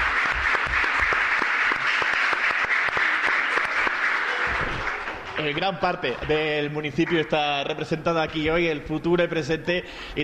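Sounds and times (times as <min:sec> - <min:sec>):
audience applause: 0:00.0 - 0:07.8
speech: 0:05.4 - 0:10.2.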